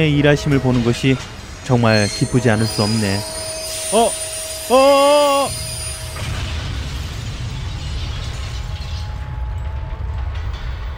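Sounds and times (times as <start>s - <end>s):
train rumbling and rattling: 0.0s - 4.7s, 5.4s - 10.9s
speech: 0.0s - 5.7s
high metallic squeals of train braking to a sudden stop: 0.5s - 7.2s.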